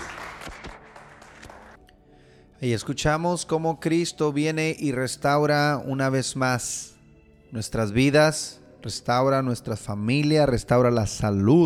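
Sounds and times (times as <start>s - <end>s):
audience applause: 0.0s - 1.8s
speech: 2.6s - 6.9s, 7.5s - 11.6s.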